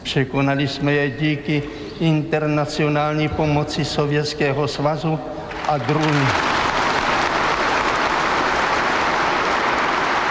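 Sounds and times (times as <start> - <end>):
speech: 0.1 - 6.5
large crowd applauding at a party congress: 5.5 - 10.2.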